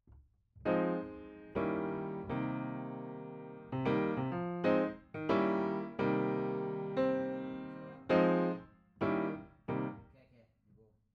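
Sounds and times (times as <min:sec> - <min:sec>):
piano note B: 0:00.7 - 0:10.0.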